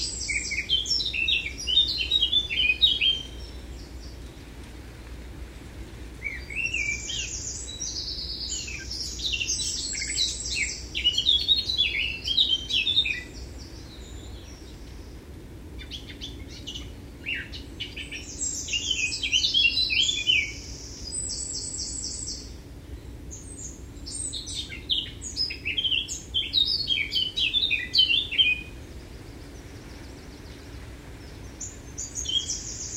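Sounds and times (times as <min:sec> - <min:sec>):
Eurasian blackcap song: 0:00.0 - 0:04.2, 0:06.2 - 0:14.6, 0:15.8 - 0:22.4, 0:23.5 - 0:28.7
steady low background noise: 0:00.0 - 0:32.9.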